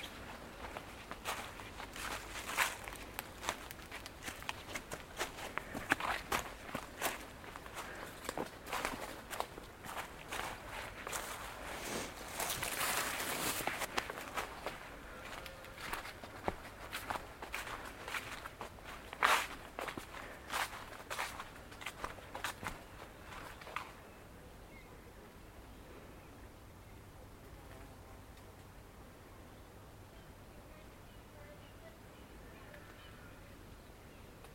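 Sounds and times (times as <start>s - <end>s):
rustling: 0.0s - 22.8s
footsteps crunching through Woodwell in Silverdale: 0.0s - 24.0s
quiet steady hiss: 0.0s - 34.5s.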